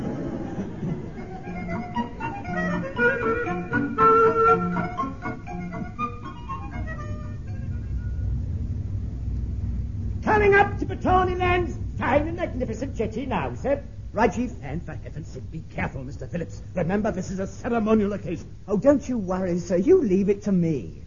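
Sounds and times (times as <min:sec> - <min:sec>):
laughter: 0:00.0 - 0:02.0
ship engine room rumble: 0:00.0 - 0:21.0
speech: 0:11.0 - 0:21.0.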